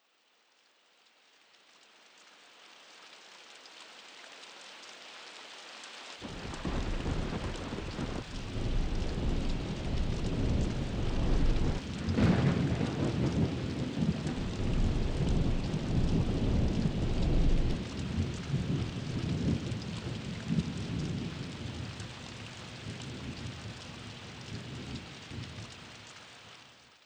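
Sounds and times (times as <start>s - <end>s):
thunder: 6.2s - 22.0s.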